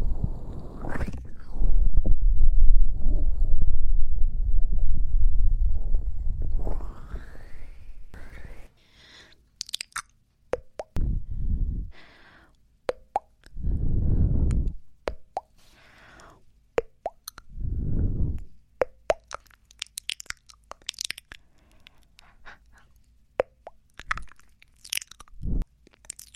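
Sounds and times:
dense low rumble: 0.0s - 8.3s, 11.0s - 11.9s, 13.5s - 14.9s, 17.5s - 18.5s, 25.4s - 25.6s
wet mouth sounds and kissy pops at the ear: 9.6s - 11.1s, 12.9s - 15.6s, 16.8s - 17.6s, 18.2s - 22.0s, 23.4s - 26.3s.

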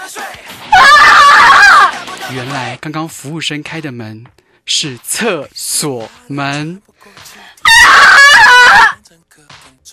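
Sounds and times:
two women screaming loudly: 0.8s - 2.0s, 7.7s - 9.0s
speech: 2.3s - 7.3s, 9.1s - 9.9s.

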